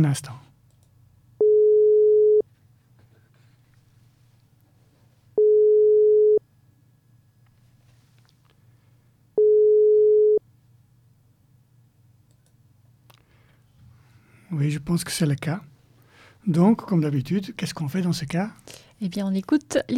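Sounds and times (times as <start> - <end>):
speech: 0.0 - 0.5, 14.5 - 15.7, 16.4 - 19.9
telephone line ringing with no answer: 1.4 - 2.4, 5.4 - 6.4, 9.4 - 10.4.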